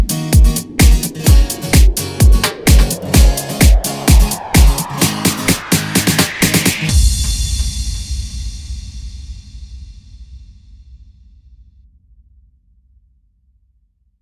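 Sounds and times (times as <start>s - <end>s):
sertanejo remix: 0.0s - 8.5s.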